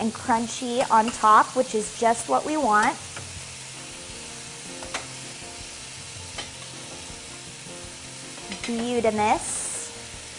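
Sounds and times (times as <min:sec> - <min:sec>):
speech: 0:00.0 - 0:03.2, 0:08.7 - 0:09.5
sea scallops sizzling in a hot pan: 0:00.0 - 0:10.3
utensil clicking against the pan: 0:04.8 - 0:05.2, 0:06.3 - 0:06.8, 0:08.3 - 0:09.0.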